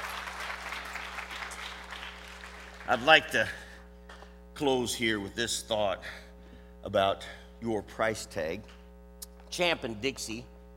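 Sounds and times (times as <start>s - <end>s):
faint audience applause: 0.0s - 3.2s
speech: 2.9s - 3.6s, 4.6s - 6.2s, 6.8s - 8.8s, 9.5s - 10.5s.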